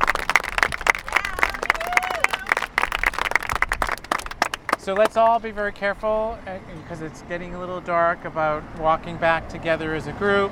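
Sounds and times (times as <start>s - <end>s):
audience applause: 0.0s - 5.3s
speech: 4.8s - 10.5s.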